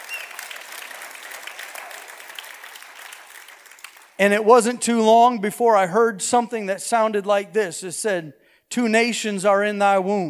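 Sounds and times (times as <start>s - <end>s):
audience applause: 0.0s - 4.4s
speech: 4.2s - 10.2s.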